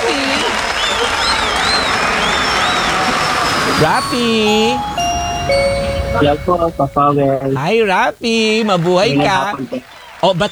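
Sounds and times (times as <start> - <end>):
studio audience applauding to welcome a guest: 0.0 - 5.6, 8.7 - 10.5
high wavering tones: 2.6 - 7.6
speech: 3.8 - 4.9, 5.5 - 10.5.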